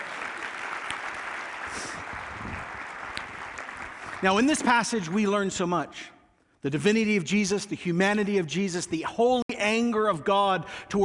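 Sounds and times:
crowd applauding: 0.0 - 5.5
speech: 4.2 - 11.0.

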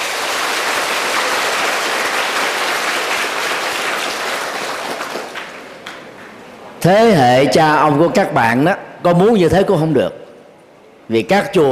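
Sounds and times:
audience applause: 0.0 - 6.0
speech: 6.8 - 10.2, 11.1 - 11.6.

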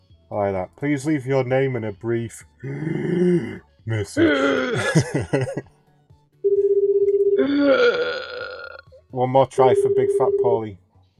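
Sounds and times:
speech: 0.3 - 5.8, 7.4 - 8.3, 9.1 - 10.8
laughter: 4.3 - 5.7
telephone ringing on the line: 6.4 - 7.4, 9.6 - 10.7.

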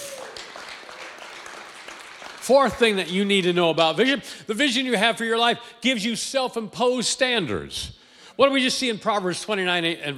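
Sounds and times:
audience cheering and clapping: 0.0 - 3.6
speech: 2.4 - 10.1.

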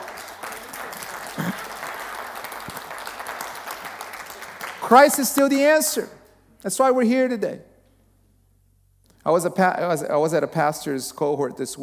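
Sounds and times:
audience applause: 0.0 - 5.5
speech: 4.9 - 7.7, 9.2 - 11.8.

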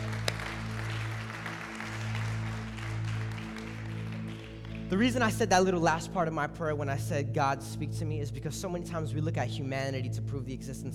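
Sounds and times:
crowd clapping: 0.0 - 5.4
low sustained musical tones: 0.0 - 10.9
speech: 4.9 - 10.9.

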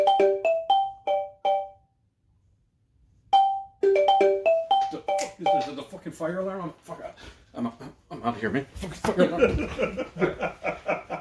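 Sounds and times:
jingle: 0.0 - 1.9, 3.3 - 5.8
speech: 5.4 - 11.0
laughter: 9.1 - 11.2.

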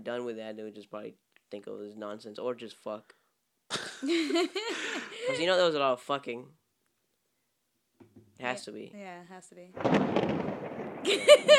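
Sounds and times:
speech: 0.0 - 6.6, 8.1 - 11.5
laughter: 3.7 - 5.5, 11.1 - 11.5
thunderclap sound effect: 9.8 - 11.5.

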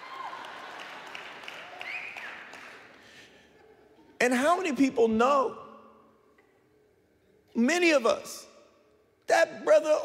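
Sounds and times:
people clapping: 0.0 - 3.3
speech: 4.2 - 5.6, 7.6 - 8.5, 9.3 - 10.0.

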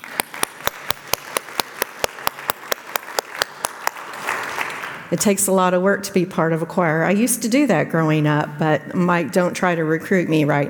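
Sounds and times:
audience applause for the choir: 0.0 - 5.1
speech: 5.1 - 10.6.

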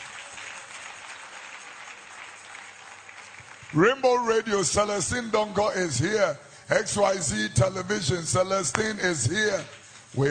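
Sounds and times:
crowd clapping: 0.0 - 5.3
speech: 3.7 - 10.2.

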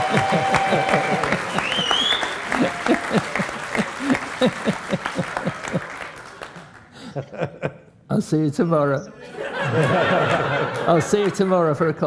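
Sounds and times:
whoops and cheers: 0.0 - 6.4
crowd clapping: 0.0 - 7.9, 9.4 - 12.0
laughter: 0.0 - 12.0
speech: 8.3 - 12.0.

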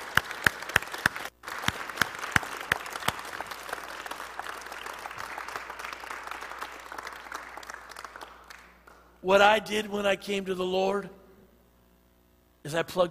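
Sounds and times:
audience clapping: 0.0 - 9.2
speech: 9.2 - 11.2, 12.7 - 13.1.

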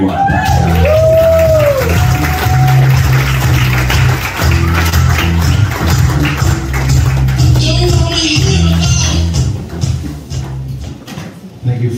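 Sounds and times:
whoops: 0.0 - 3.3
crowd cheering and applauding: 0.0 - 9.3
pulsing low beat: 0.5 - 10.9.

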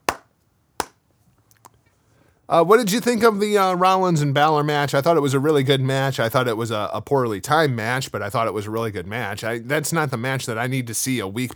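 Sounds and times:
hand clapping: 0.0 - 1.0
speech: 2.5 - 11.5.

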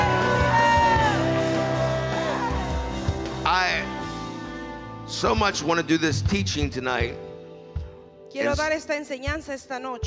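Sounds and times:
church congregation shouting praise to Jesus: 0.0 - 3.2
speech: 5.2 - 7.2, 8.3 - 10.0.

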